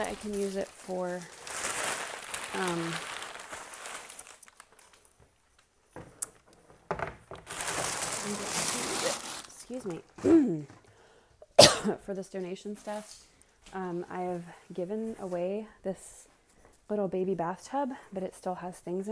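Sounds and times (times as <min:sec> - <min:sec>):
speech: 0:00.0 - 0:01.4, 0:02.5 - 0:03.1, 0:09.7 - 0:10.8, 0:11.8 - 0:16.2, 0:16.9 - 0:19.0
packing paper rustling as pulled out of a cardboard box that held a baby swing: 0:00.0 - 0:05.7, 0:07.3 - 0:10.1.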